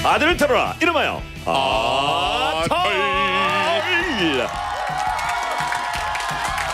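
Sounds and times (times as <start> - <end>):
speech: 0.1 - 3.4
studio audience cheering and whooping: 2.9 - 6.7.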